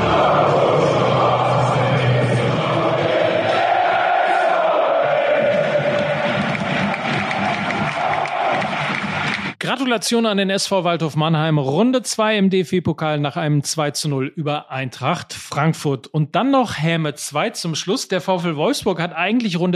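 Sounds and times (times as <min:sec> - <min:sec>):
football crowd cheering SV Waldhof Mannheim's DFB-Pokal win over Eintracht Frankfurt: 0:00.0 - 0:09.6
speech: 0:09.9 - 0:19.7.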